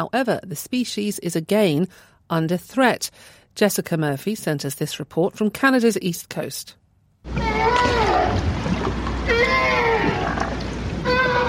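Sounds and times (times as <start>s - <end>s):
speech: 0.0s - 9.0s
North Atlantic right whale calling underwater: 7.3s - 11.4s
water hiss and rumble: 7.3s - 11.4s.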